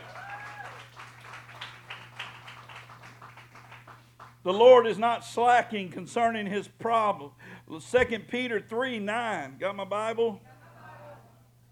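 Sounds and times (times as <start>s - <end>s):
audience applause: 0.0s - 4.3s
speech: 4.4s - 10.5s.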